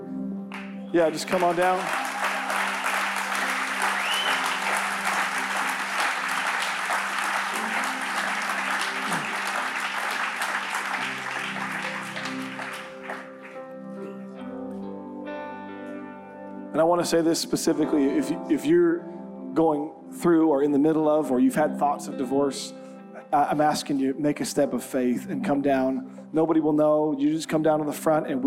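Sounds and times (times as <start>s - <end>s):
audience clapping: 0.5s - 13.7s
speech: 0.9s - 2.2s, 16.8s - 28.4s.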